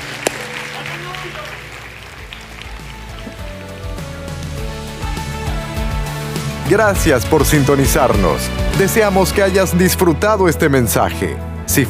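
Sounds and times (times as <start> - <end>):
audience clapping hands: 0.0 - 9.0
speech: 6.7 - 11.8.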